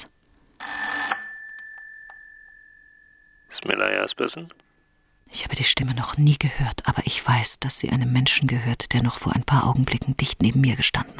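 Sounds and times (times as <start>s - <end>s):
telephone ringing: 0.6s - 4.1s
speech: 3.6s - 4.6s, 5.4s - 11.1s.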